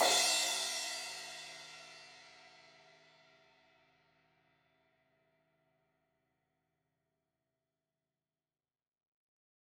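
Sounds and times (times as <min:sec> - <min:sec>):
16-inch crash cymbal hit on the edge: 0:00.0 - 0:01.9.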